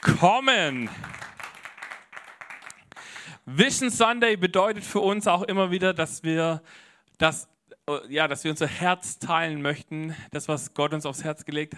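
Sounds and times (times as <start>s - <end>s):
audience applause: 0.0s - 3.3s
speech: 0.2s - 1.2s, 3.5s - 11.7s.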